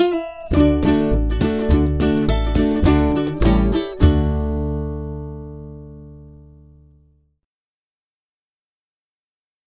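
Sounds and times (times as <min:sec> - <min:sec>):
ukulele: 0:00.0 - 0:07.1.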